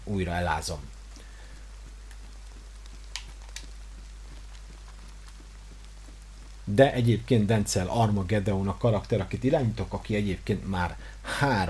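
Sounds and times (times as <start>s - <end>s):
rain in a video game: 0.0s - 11.6s
speech: 0.1s - 1.0s, 6.7s - 11.6s
sharp ticks: 1.5s - 6.0s.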